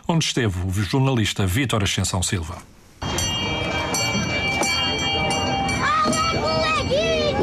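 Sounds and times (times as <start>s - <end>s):
speech: 0.1s - 3.3s
bell-like ringing tones: 3.0s - 7.4s
crowd chatter: 3.0s - 7.4s
small tourist train rolling through a busy square: 3.0s - 7.4s
children's voices: 3.6s - 7.4s.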